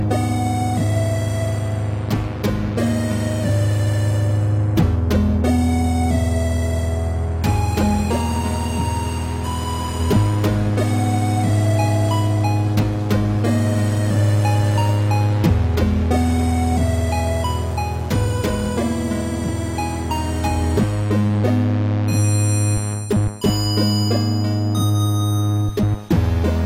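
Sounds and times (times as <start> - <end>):
8-bit music: 0.0 - 26.6.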